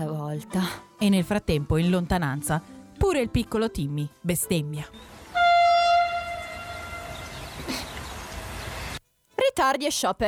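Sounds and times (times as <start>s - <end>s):
speech: 0.0s - 5.1s, 9.6s - 10.2s
regional train horn blast in the distance: 5.2s - 7.6s.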